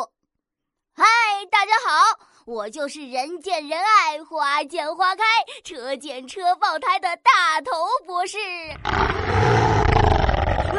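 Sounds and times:
speech: 0:01.0 - 0:09.8
brown bear roaring: 0:08.8 - 0:10.7.

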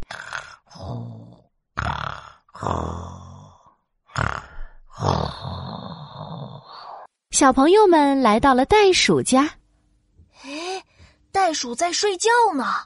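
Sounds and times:
person imitating snoring: 0:00.0 - 0:07.1
speech: 0:07.4 - 0:09.6, 0:11.5 - 0:12.8.

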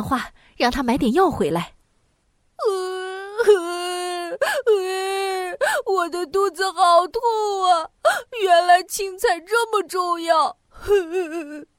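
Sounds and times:
speech: 0:00.0 - 0:01.8, 0:02.6 - 0:03.8, 0:05.9 - 0:11.7
child crying: 0:02.6 - 0:11.7.

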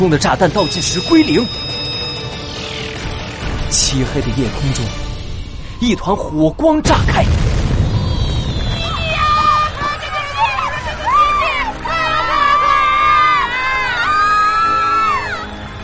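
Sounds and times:
speech: 0:00.0 - 0:02.4, 0:03.7 - 0:05.0, 0:05.8 - 0:07.5
crowd cheering: 0:07.7 - 0:15.8.

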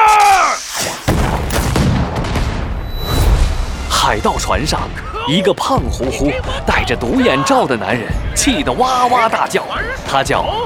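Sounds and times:
ship's cannons firing in a pirate sea battle: 0:01.1 - 0:02.8
brief tonal sound: 0:02.8 - 0:04.7
speech: 0:04.1 - 0:10.6.

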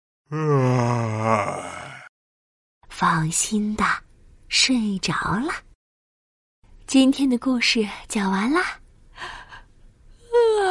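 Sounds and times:
speech: 0:00.3 - 0:00.8, 0:03.0 - 0:05.7, 0:06.9 - 0:09.4
voice imitating a big yawn: 0:00.3 - 0:02.1.

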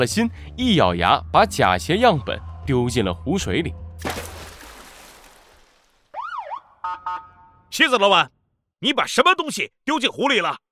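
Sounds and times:
speech: 0:00.0 - 0:04.2, 0:07.8 - 0:10.6
police siren wailing: 0:06.2 - 0:07.6.

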